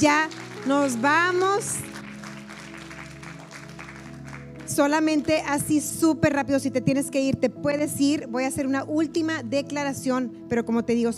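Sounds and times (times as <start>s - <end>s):
speech: 0.0s - 1.9s, 4.8s - 11.1s
crowd clapping: 0.0s - 5.6s.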